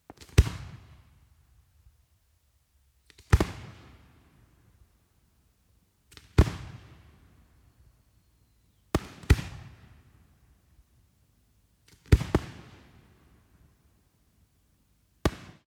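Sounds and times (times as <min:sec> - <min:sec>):
fireworks single shots: 0:00.1 - 0:01.2, 0:03.1 - 0:04.2, 0:06.1 - 0:07.1, 0:08.9 - 0:10.0, 0:11.9 - 0:13.1, 0:15.2 - 0:15.6.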